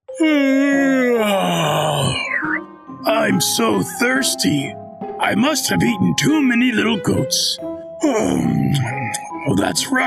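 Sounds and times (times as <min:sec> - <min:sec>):
speech: 0:00.2 - 0:00.9, 0:03.0 - 0:10.0
voice imitating a wolf groaning as it wakes: 0:00.2 - 0:02.6.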